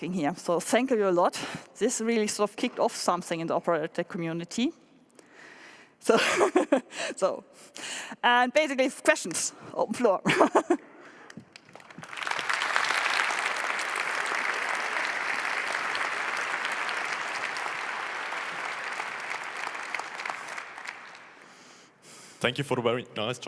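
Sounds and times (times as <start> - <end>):
speech: 0.0 - 4.8, 6.0 - 10.9, 22.4 - 23.4
audience applause after a talk: 11.3 - 21.6.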